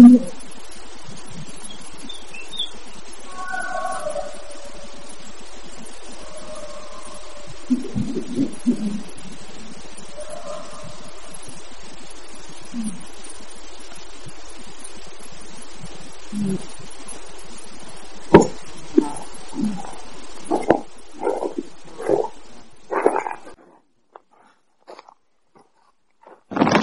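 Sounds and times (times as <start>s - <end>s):
howling: 1.2s - 12.1s, 15.8s - 23.6s.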